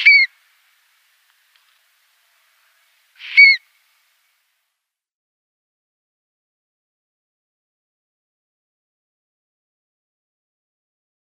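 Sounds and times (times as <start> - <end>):
stone curlew giving wailing whistled calls: 0.0 - 0.4, 3.2 - 3.7.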